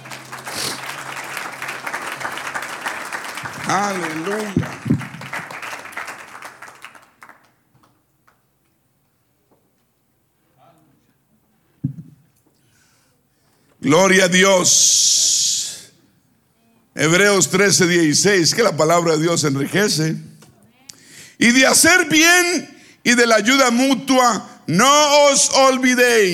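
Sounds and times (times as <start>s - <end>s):
audience applause: 0.0s - 8.0s
speech: 3.7s - 4.9s, 13.9s - 15.3s, 17.0s - 20.4s, 21.4s - 26.3s.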